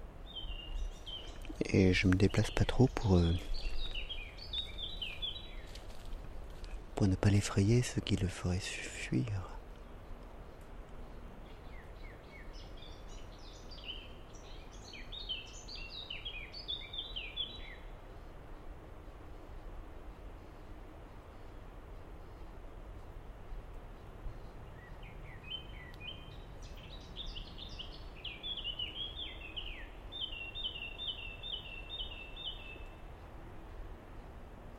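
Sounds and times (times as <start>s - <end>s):
constant hiss: 0.0s - 34.7s
common blackbird singing: 0.2s - 5.8s, 11.1s - 17.9s, 24.3s - 33.1s
speech: 1.7s - 3.7s, 7.0s - 9.5s.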